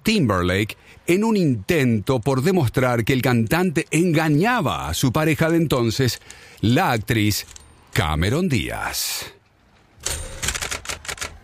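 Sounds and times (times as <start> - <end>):
speech: 0.1 - 9.4, 10.0 - 10.3
analog typewriter typing: 10.0 - 11.4.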